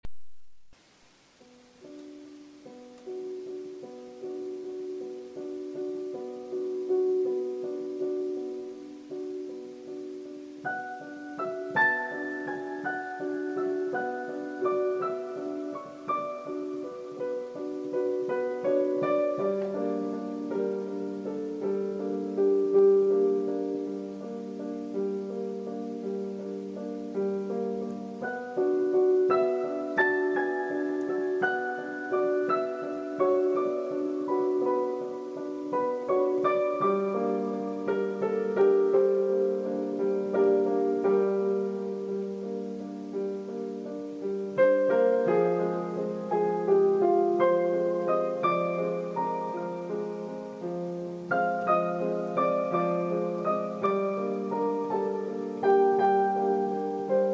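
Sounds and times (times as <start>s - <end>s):
freestyle piano improvisation: 1.4s - 57.3s.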